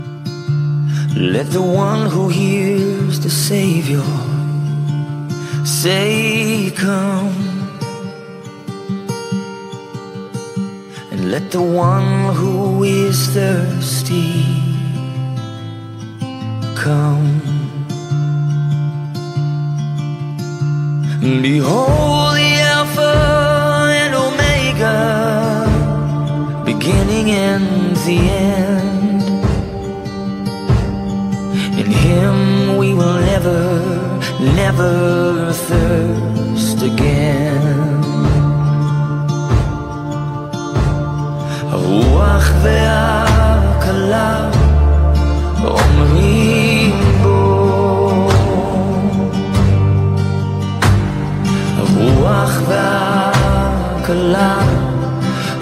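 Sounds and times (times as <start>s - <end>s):
English music: 0.0s - 55.6s.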